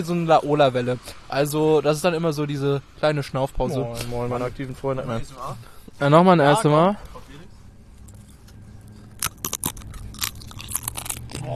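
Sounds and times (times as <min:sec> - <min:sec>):
speech: 0:00.0 - 0:07.1
soft chewing: 0:07.9 - 0:11.5
crunching potato chips: 0:09.0 - 0:11.5.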